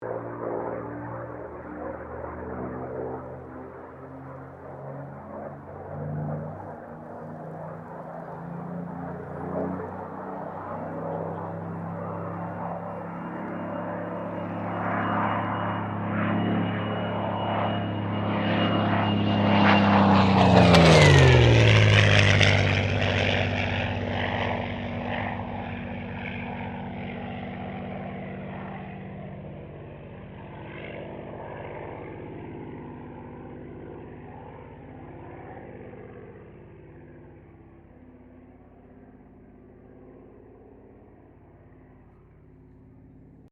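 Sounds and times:
Supermarine Spitfire Mk XVI aircraft passing: 0:00.0 - 0:43.4.

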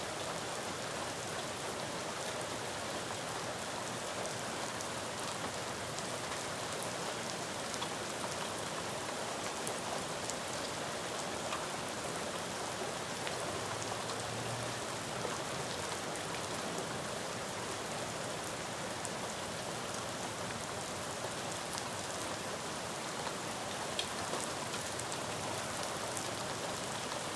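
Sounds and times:
splatty medium rain on a neighborhood street: 0:00.0 - 0:27.3.

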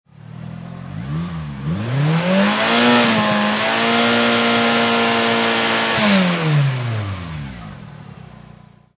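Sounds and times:
Mitsubishi Eclipse engine long rev: 0:00.1 - 0:08.9.

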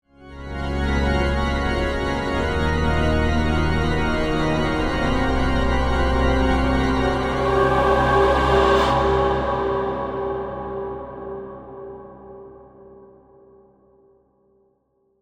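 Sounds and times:
dramatic horror organ: 0:00.2 - 0:10.7
dramatic horror choir singing: 0:05.0 - 0:12.4.

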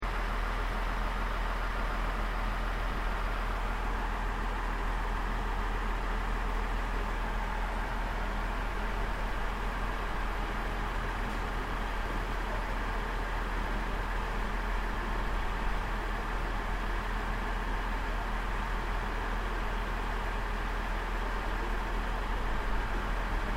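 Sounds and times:
JR regional train idling in Aomori: 0:00.0 - 0:23.5.

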